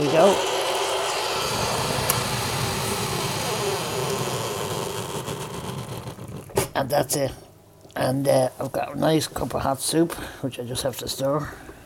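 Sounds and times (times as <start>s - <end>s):
speech: 0.1s - 0.6s, 6.8s - 7.4s, 8.0s - 11.6s
hot water dispenser boiling water: 0.9s - 6.7s.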